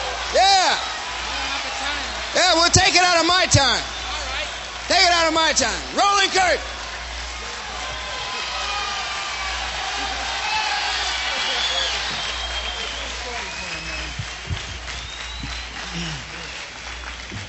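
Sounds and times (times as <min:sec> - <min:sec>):
large audience applause: 0:00.0 - 0:17.4
speech: 0:02.6 - 0:04.0, 0:04.9 - 0:06.7
whistles and whoops: 0:07.8 - 0:17.4.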